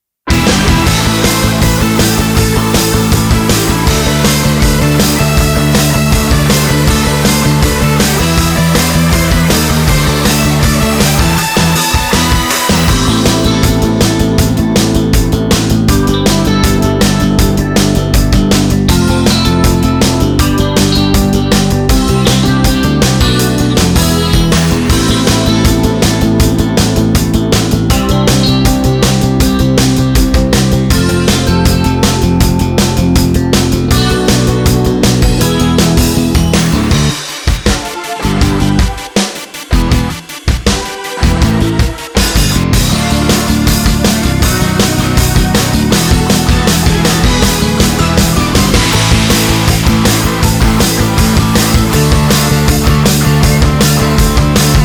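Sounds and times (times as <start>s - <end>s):
instrumental music: 0.3s - 54.8s.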